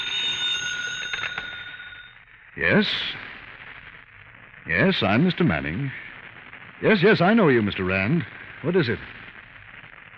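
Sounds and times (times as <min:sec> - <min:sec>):
telephone bell ringing: 0:00.0 - 0:02.2
speech: 0:02.6 - 0:03.2, 0:04.7 - 0:06.0, 0:06.8 - 0:09.1.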